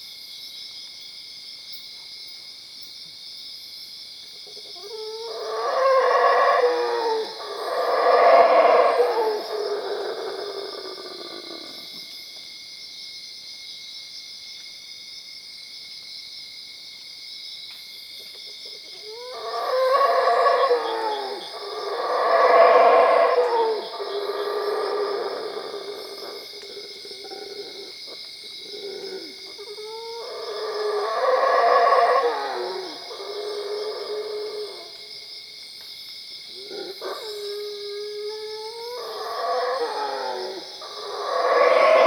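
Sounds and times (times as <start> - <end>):
insects droning: 0.0 - 42.0
howler monkey howling: 4.8 - 11.9, 18.9 - 35.0, 36.5 - 42.0.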